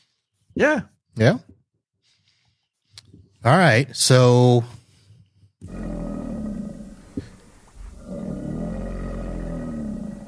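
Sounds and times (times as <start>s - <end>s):
speech: 0.6s - 1.5s, 3.4s - 4.8s
alligator growling: 5.6s - 10.2s.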